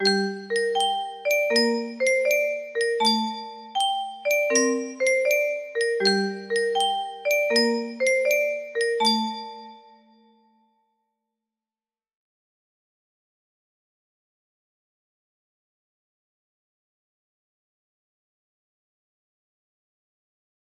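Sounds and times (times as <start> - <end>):
creepy music box melody: 0.0 - 10.6.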